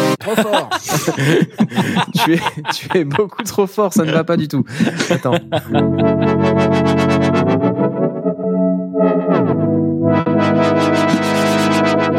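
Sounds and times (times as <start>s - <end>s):
laughter: 0.2s - 6.5s
speech: 0.3s - 7.0s
Korg Minilogue analog synthesizer pad chords with fluttering pulse: 5.5s - 12.1s.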